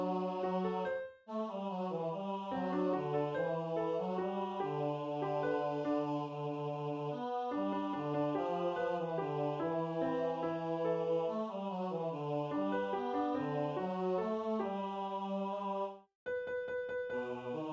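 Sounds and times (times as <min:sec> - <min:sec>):
mass choir bass voices singing: 0:00.0 - 0:16.0, 0:17.2 - 0:17.7.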